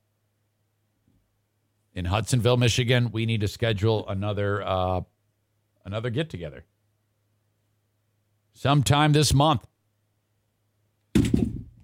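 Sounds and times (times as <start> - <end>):
speech: 2.0 - 5.1, 5.8 - 6.7, 8.6 - 9.7
phone dropped on a hard surface: 11.1 - 11.8.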